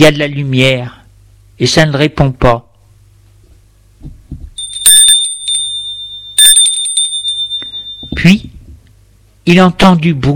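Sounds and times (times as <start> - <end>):
speech: 0.0 - 1.0, 1.6 - 2.7, 8.2 - 8.5, 9.5 - 10.3
doorbell ringing: 4.6 - 8.3.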